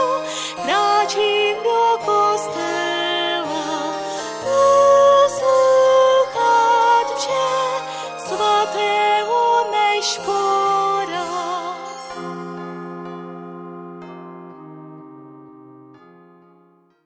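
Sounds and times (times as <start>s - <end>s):
person singing: 0.0s - 12.9s.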